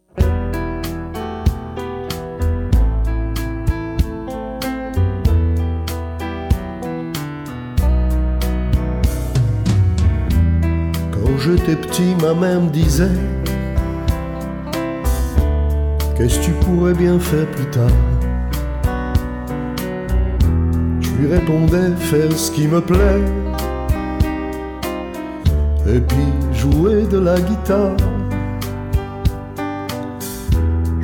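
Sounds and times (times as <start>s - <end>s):
guitar: 0.0s - 31.0s.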